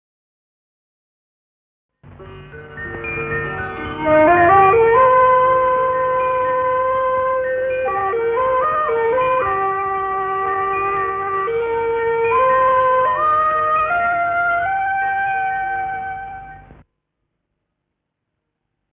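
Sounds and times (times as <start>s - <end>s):
emblem music: 2.0s - 16.8s.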